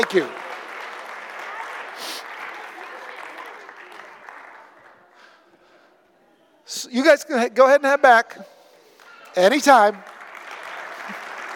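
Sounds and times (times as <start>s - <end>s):
speech: 0.0s - 0.4s, 7.0s - 8.5s, 9.4s - 10.1s
audience applause: 0.0s - 5.4s, 9.6s - 11.5s.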